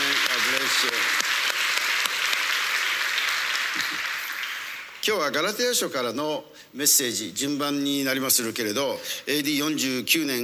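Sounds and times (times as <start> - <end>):
audience applause: 0.0 - 5.0
speech: 0.8 - 1.2, 5.0 - 10.4.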